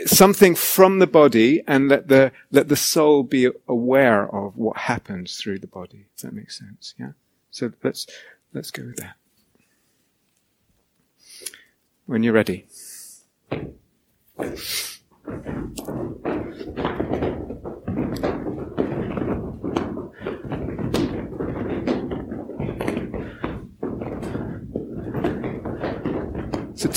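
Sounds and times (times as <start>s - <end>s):
feet stomping on the floor: 0.0s - 0.4s, 13.5s - 26.9s
speech: 0.1s - 9.2s, 11.4s - 12.8s, 13.5s - 13.8s, 14.4s - 17.4s.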